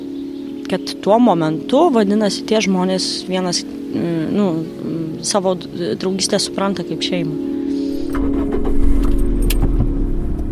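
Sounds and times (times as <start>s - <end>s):
speech: 0.7s - 8.4s
car engine and road rumble while driving along a road: 4.7s - 10.5s.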